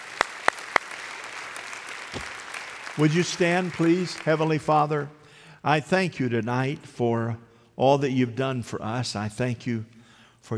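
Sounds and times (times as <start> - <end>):
sharp hand claps: 0.0 - 4.5
applause: 0.0 - 5.1
speech: 3.0 - 10.5.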